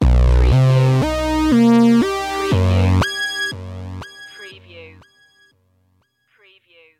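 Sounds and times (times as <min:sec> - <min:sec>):
short evil music: 0:00.0 - 0:05.5.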